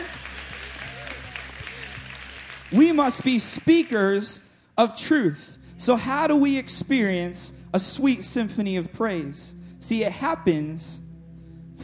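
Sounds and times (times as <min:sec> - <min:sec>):
audience applause: 0:00.0 - 0:04.2
speech: 0:02.7 - 0:11.0.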